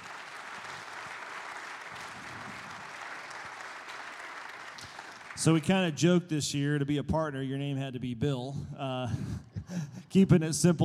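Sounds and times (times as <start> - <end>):
applause: 0.0 - 6.0
speech: 5.4 - 10.8.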